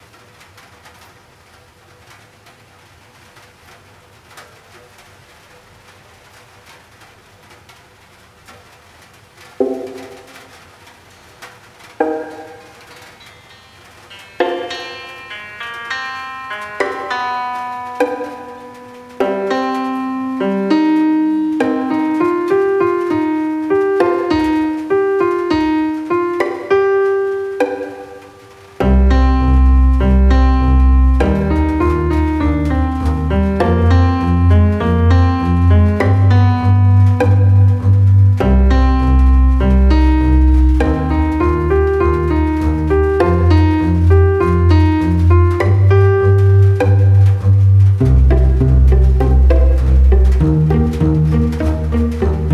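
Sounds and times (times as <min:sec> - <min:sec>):
rain at a harbor: 0:00.0 - 0:52.5.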